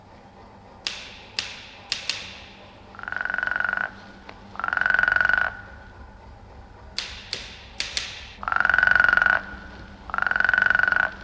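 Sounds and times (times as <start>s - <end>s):
sharp typewriter-like tapping: 0.8s - 2.8s, 7.0s - 8.4s
tree frog croaking: 2.9s - 5.9s, 8.4s - 11.2s.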